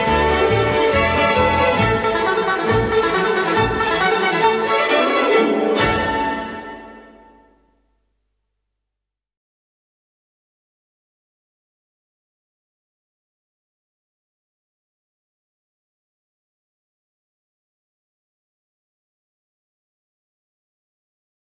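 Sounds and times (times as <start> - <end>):
hoedown music: 0.0 - 7.4.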